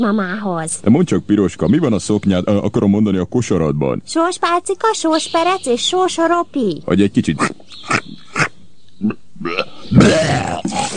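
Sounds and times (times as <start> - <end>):
speech: 0.0 - 10.9
voice imitating a wolf vomiting: 7.3 - 10.9.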